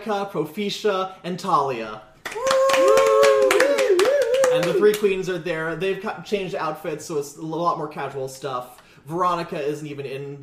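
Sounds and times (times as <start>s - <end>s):
speech: 0.0s - 2.1s, 4.6s - 10.4s
hands clapping: 2.2s - 5.2s.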